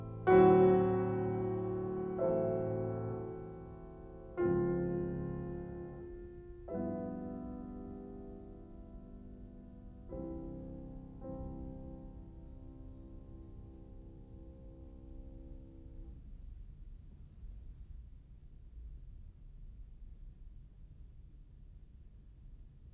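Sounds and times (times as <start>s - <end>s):
piano prelude in C major: 0.0s - 16.2s.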